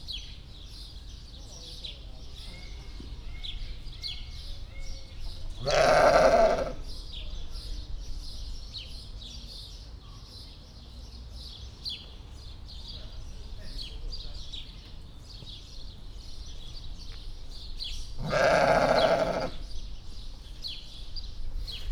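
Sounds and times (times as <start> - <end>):
Valais Blacknose sheep alone in Debrecen zoo: 5.6 - 6.8, 18.2 - 19.6.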